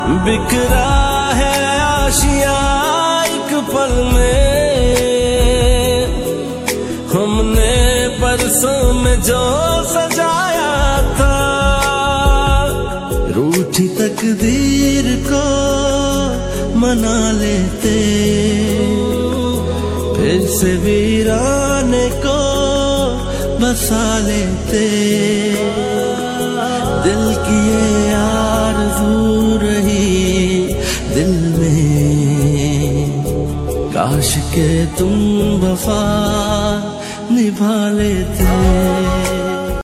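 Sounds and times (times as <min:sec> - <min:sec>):
sad Hindi song: 0:00.0 - 0:39.8.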